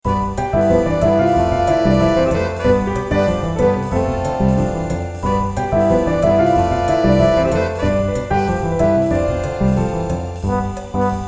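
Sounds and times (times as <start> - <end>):
jazz music: 0.0 - 11.2.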